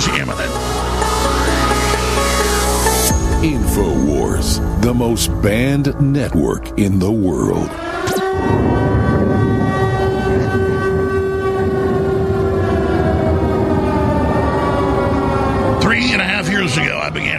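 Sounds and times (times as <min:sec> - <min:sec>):
air raid siren: 0:00.0 - 0:17.3
speech: 0:03.4 - 0:09.6.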